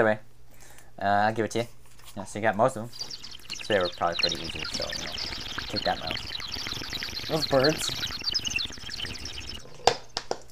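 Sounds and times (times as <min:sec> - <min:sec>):
speech: 0:00.0 - 0:00.3, 0:01.0 - 0:06.4, 0:07.3 - 0:08.1
bong rip bubbling: 0:02.9 - 0:10.2.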